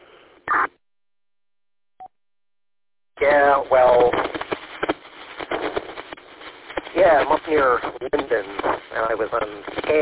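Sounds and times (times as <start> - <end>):
MDC 1200 radio data burst: 0.5 - 0.7, 3.2 - 10.0
speech: 3.2 - 4.2, 7.1 - 10.0.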